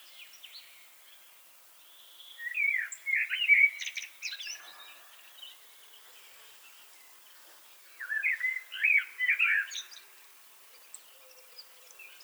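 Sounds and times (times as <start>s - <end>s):
common blackbird Turdus merula song with fluty and twittery notes: 0.0s - 12.2s.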